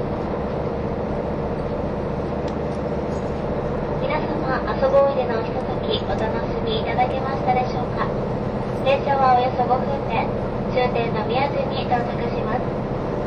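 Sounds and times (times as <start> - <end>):
KiHa 183 series Asoboy train engine drone from Kumamoto to Miyaji: 0.0 - 13.2.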